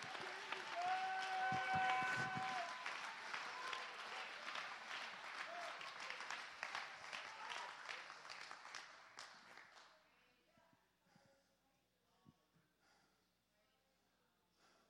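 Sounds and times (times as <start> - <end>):
audience applause: 0.0 - 9.9.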